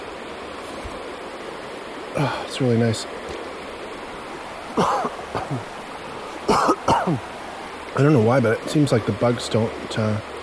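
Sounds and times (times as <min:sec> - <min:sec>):
loud river: 0:00.0 - 0:10.4
speech: 0:02.2 - 0:03.4, 0:04.8 - 0:05.8, 0:06.9 - 0:07.3, 0:08.0 - 0:10.3.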